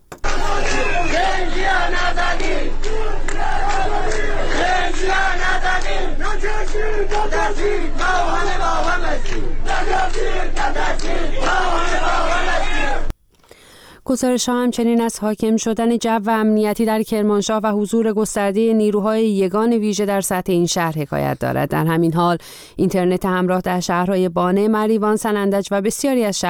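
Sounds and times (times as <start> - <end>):
large protest crowd chanting: 0.2 - 13.1
speech: 5.8 - 13.1, 14.1 - 26.4.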